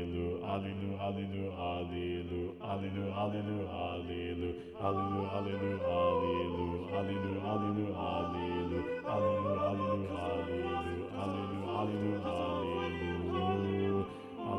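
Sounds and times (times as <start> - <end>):
mixed SATB choir singing with predominant first bass: 0.0 - 14.5.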